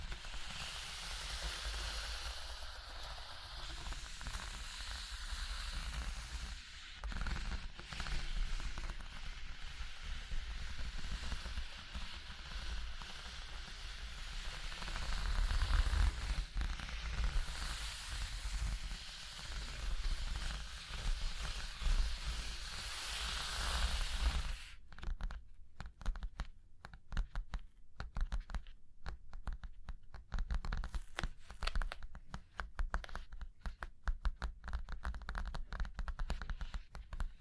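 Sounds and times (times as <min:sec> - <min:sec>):
scratching and tracing across a surface: 0:00.0 - 0:27.6, 0:30.3 - 0:37.4
taps and short scrapes: 0:03.6 - 0:37.4.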